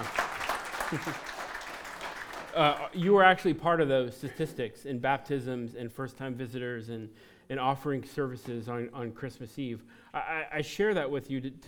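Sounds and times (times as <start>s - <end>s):
laughter: 0.0s - 2.9s
crowd clapping: 0.0s - 3.2s
speech: 0.9s - 1.3s, 2.6s - 11.6s.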